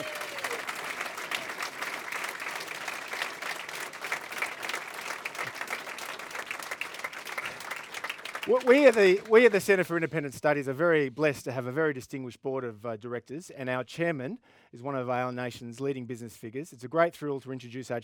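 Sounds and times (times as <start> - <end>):
audience applause: 0.0 - 9.8
speech: 8.5 - 18.0.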